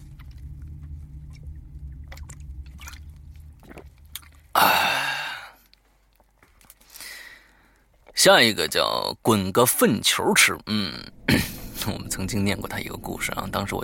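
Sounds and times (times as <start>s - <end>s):
low hum: 0.0s - 6.5s, 10.6s - 13.8s
person taking a sip of water: 0.1s - 5.8s
breathy exhale: 4.5s - 5.7s, 6.8s - 7.8s
speech: 8.2s - 11.2s, 11.8s - 13.8s.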